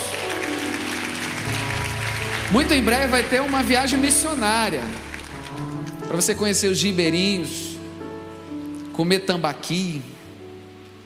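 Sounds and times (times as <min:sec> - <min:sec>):
audience applauding: 0:00.0 - 0:06.5
speech: 0:02.5 - 0:07.7, 0:09.0 - 0:10.1.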